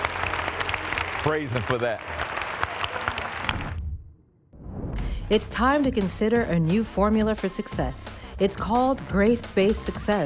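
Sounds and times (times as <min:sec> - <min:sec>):
congregation clapping at a church service: 0:00.0 - 0:03.8
speech: 0:01.2 - 0:02.3, 0:05.3 - 0:10.2.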